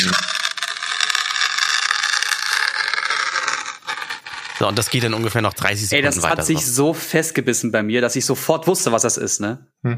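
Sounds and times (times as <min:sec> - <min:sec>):
fingernail scratching at the foil seal on a jar: 0:00.0 - 0:06.7
speech: 0:04.6 - 0:09.9.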